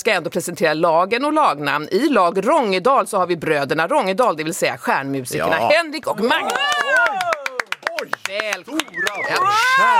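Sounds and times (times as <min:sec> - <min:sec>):
speech: 0:00.0 - 0:07.3, 0:08.0 - 0:09.9
excited voices and whooping cheers: 0:06.3 - 0:08.1, 0:08.8 - 0:09.9
studio audience clapping: 0:06.3 - 0:09.9.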